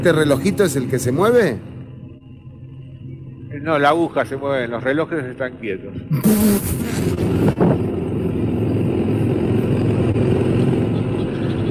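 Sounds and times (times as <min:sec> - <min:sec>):
speech: 0:00.0 - 0:01.7, 0:03.6 - 0:08.0
engine revved: 0:06.1 - 0:11.6.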